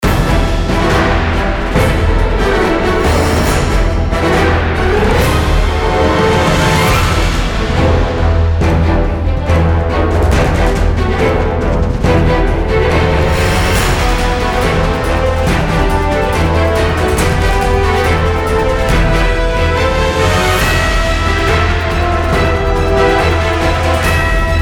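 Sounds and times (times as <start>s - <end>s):
cave dungeon background music: 0.0s - 24.6s.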